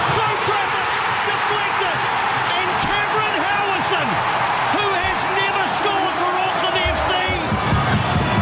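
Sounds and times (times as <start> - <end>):
huge football crowd roaring after a goal: 0.0 - 8.4.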